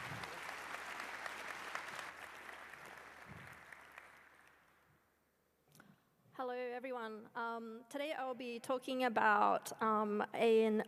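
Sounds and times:
audience applause: 0:00.0 - 0:04.7
speech: 0:06.4 - 0:10.8.

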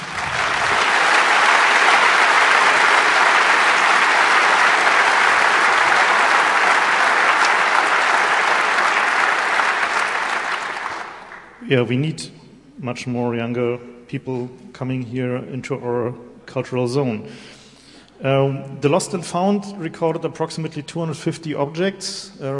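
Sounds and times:
audience applause: 0:00.0 - 0:11.6
speech: 0:11.7 - 0:17.6, 0:18.2 - 0:22.5.

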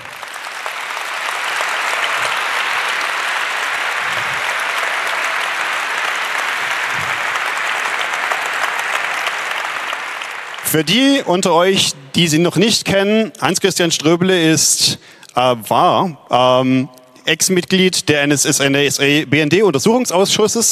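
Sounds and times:
audience applause: 0:00.0 - 0:11.9
speech: 0:10.7 - 0:20.7.

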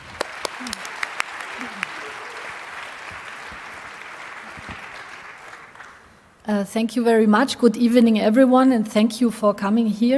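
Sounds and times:
audience applause: 0:00.0 - 0:06.2
speech: 0:06.5 - 0:10.1.

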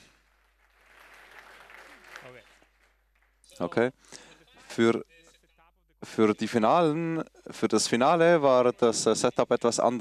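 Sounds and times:
people applauding in a hall: 0:00.0 - 0:03.9
speech: 0:03.6 - 0:05.2, 0:06.0 - 0:09.9.

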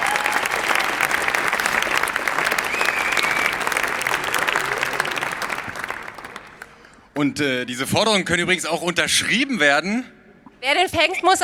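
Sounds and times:
audience applause: 0:00.0 - 0:07.0
speech: 0:07.2 - 0:11.4.

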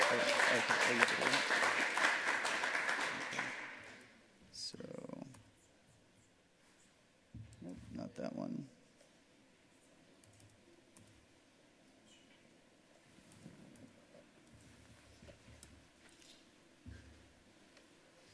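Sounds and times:
audience applause: 0:00.0 - 0:04.0.

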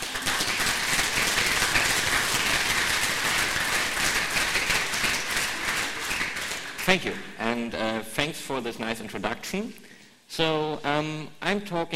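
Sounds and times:
audience applause: 0:00.0 - 0:07.4
speech: 0:06.9 - 0:11.9.

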